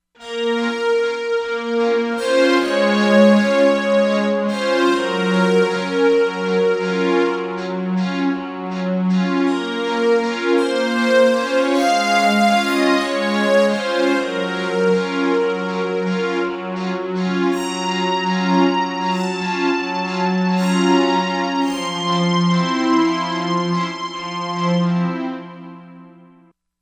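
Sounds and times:
Korg MSC-07S synthesizer: 0.2s - 26.5s.

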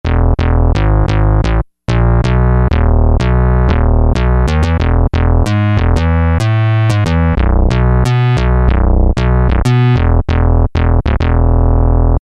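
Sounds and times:
bass: 0.0s - 12.2s.

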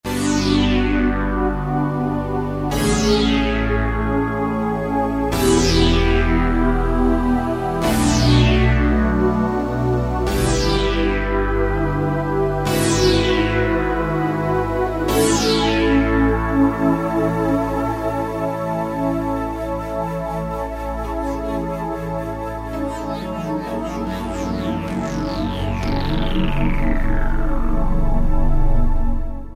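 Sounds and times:
Alesis Z5 vintage synthesizer: 0.0s - 29.5s.

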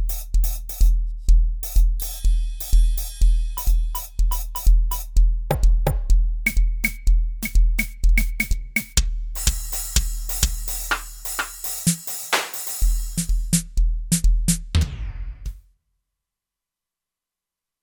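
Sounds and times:
techno drum kit on a synthesizer: 0.0s - 15.6s.

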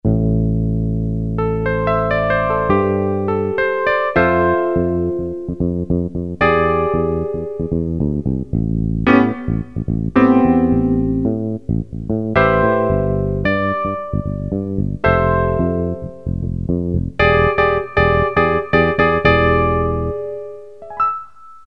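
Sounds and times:
piano: 0.1s - 21.6s.

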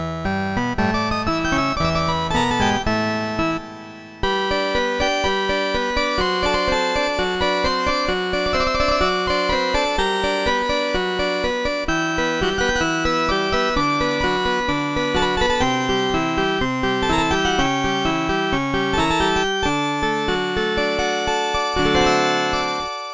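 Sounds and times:
harpsichord preset sounds on a Casio MT-68 keyboard: 0.3s - 23.1s.

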